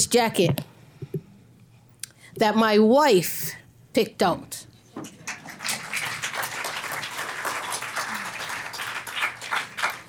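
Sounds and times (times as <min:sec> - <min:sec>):
speech: 0:00.0 - 0:00.7, 0:02.4 - 0:05.2
crowd clapping: 0:05.2 - 0:10.0.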